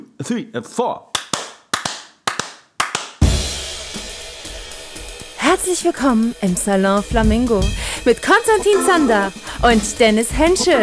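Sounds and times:
speech: 0.2 - 1.1, 5.5 - 10.8
hosts clapping hands: 1.1 - 3.3
laughter: 7.4 - 10.8.

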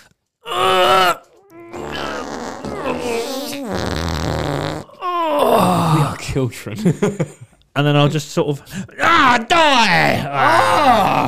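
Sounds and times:
person imitating a strained grunt: 0.4 - 4.0, 4.7 - 6.2, 10.2 - 11.2
vocal raspberry-like fart noises: 1.3 - 5.0
speech: 6.4 - 11.2
laughter: 6.7 - 8.1.

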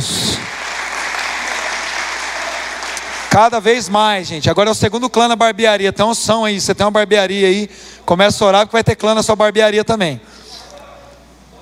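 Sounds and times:
audience applause: 0.0 - 4.2
speech: 3.4 - 10.4.

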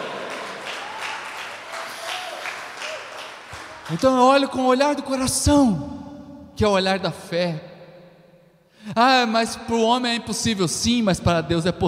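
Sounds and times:
audience applauding: 0.0 - 4.5
speech: 3.9 - 6.0, 6.6 - 7.7, 8.8 - 11.8.

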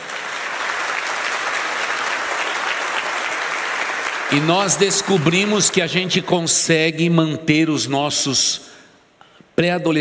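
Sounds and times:
audience applause: 0.0 - 5.8
speech: 4.3 - 8.7, 9.6 - 9.9.

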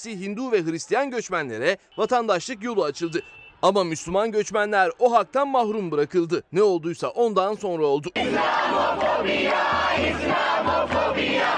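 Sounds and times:
speech: 0.0 - 11.5
protest crowd chanting: 8.2 - 11.5.

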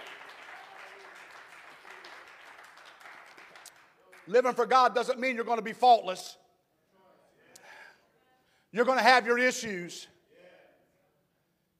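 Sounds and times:
crowd clapping: 0.0 - 5.1
speech: 4.3 - 6.4, 8.7 - 10.1.

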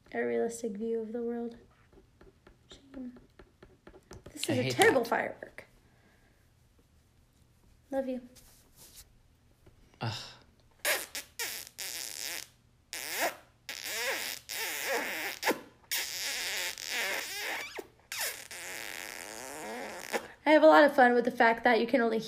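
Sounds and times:
speech: 0.1 - 1.7, 2.9 - 3.3, 4.4 - 5.5, 7.9 - 8.4, 10.0 - 10.3, 20.6 - 22.2
fart: 10.8 - 20.4.

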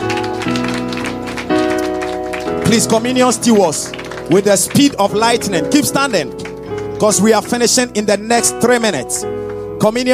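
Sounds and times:
audience clapping in rhythm: 0.0 - 8.0
sustained loud keyboard chords: 0.0 - 10.1
speech: 2.7 - 6.4, 7.0 - 10.1.

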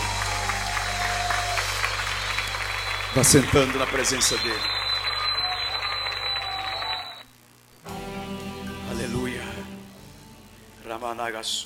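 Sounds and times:
audience clapping: 0.0 - 7.2
low electrical hum: 0.0 - 8.0, 8.9 - 11.6
speech: 3.2 - 4.8, 11.2 - 11.6.

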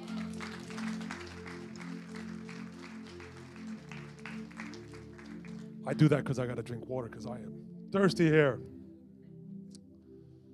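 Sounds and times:
audience hand clapping: 0.0 - 6.2
sustained low musical drone: 0.0 - 10.5
speech: 5.8 - 8.8.

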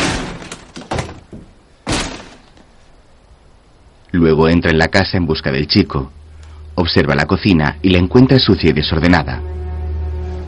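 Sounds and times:
door kicked open: 0.0 - 2.7
speech: 4.2 - 6.2, 6.8 - 9.5.

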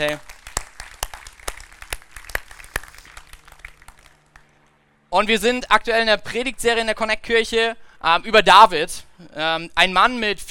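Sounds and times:
speech: 0.0 - 0.3, 5.1 - 10.4
crowd applause: 0.0 - 4.7.

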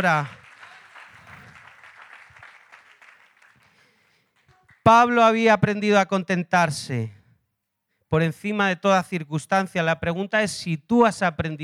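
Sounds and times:
speech: 0.0 - 0.4, 4.8 - 7.2, 8.1 - 11.6
audience applauding: 0.0 - 4.8.

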